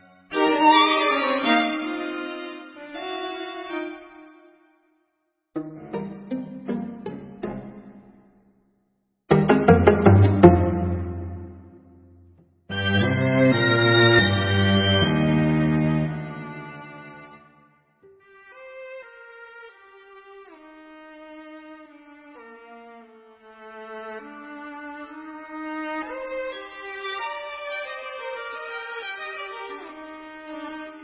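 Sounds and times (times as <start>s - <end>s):
string trio playing: 0.0s - 4.3s, 5.6s - 8.2s, 9.3s - 12.0s, 12.7s - 17.6s, 18.2s - 31.0s.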